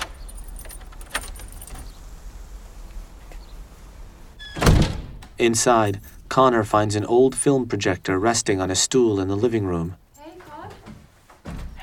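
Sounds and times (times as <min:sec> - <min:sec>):
keys unlocking and opening front door: 0:00.0 - 0:02.0, 0:05.8 - 0:06.3
speech: 0:05.4 - 0:10.0.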